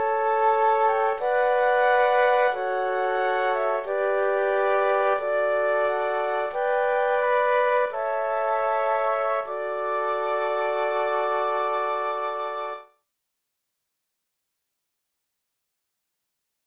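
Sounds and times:
classical flute quartet playing a canon: 0.0 - 12.8.

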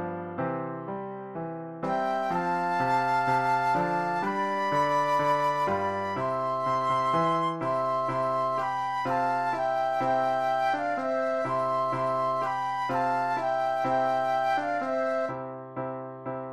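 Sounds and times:
piano playing Christmas music: 0.0 - 16.5
flute duet playing Christmas music: 1.9 - 15.3.

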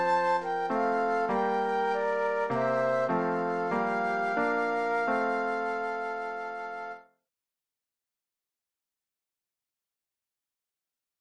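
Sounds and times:
flute duet: 0.0 - 7.2
piano: 0.0 - 7.2.

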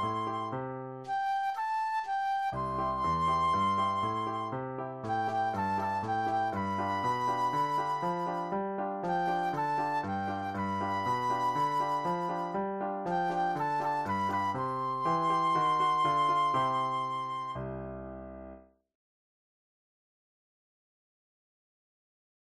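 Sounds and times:
flute solo: 0.0 - 17.9.

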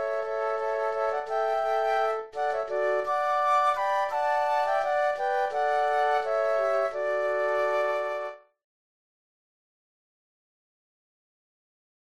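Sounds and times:
flute trio playing: 0.0 - 8.4.

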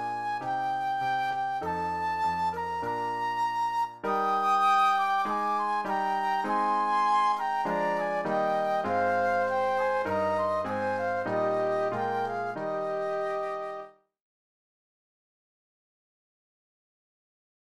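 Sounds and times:
classical hymn flute duet with piano: 0.0 - 14.0.

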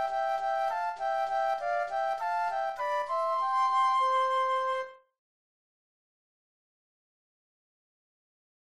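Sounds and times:
flute duet: 0.0 - 5.1.

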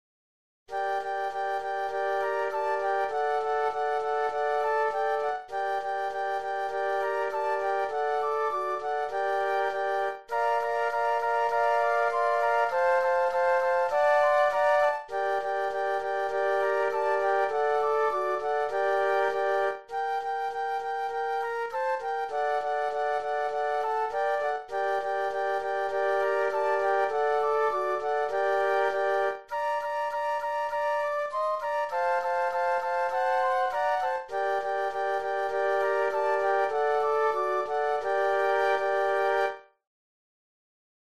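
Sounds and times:
flute quartet: 0.7 - 39.7.

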